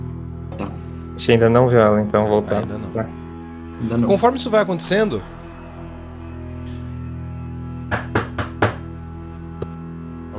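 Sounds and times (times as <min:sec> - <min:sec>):
speech: 0:00.6 - 0:03.2, 0:03.8 - 0:05.4
knocking on a car door: 0:07.9 - 0:08.9.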